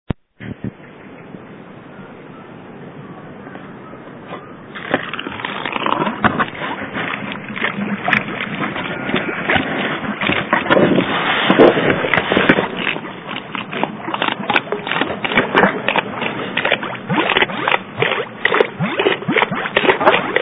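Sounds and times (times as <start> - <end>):
pulser pump: 4.8 - 20.4.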